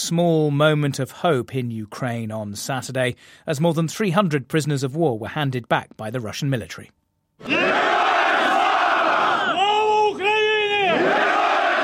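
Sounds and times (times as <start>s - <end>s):
speech: 0.0s - 7.6s
crowd of families cheering to welcome returning buses: 7.4s - 11.8s.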